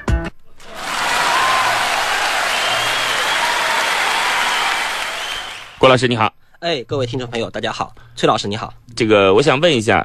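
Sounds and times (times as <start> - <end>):
audience applause: 0.6 - 5.8
speech: 5.8 - 10.0.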